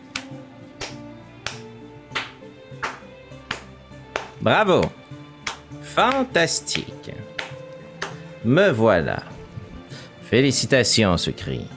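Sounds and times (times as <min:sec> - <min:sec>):
sharp hand claps: 0:00.0 - 0:08.4
speech: 0:04.4 - 0:05.0, 0:06.0 - 0:07.3, 0:08.4 - 0:09.3, 0:10.3 - 0:11.7.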